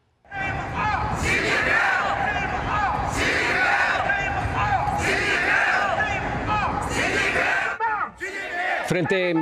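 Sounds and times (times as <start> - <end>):
crowd of protesters shouting: 0.3 - 9.3.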